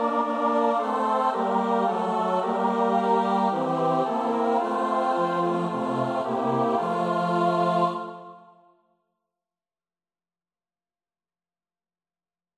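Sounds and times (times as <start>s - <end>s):
soprano alto tenor bass choir singing: 0.0s - 8.6s.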